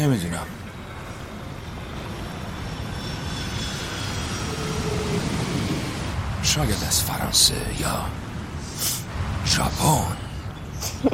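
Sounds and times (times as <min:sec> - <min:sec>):
speech: 0:00.0 - 0:00.6, 0:06.4 - 0:08.2, 0:09.5 - 0:10.2
airplane flying overhead: 0:00.0 - 0:11.1.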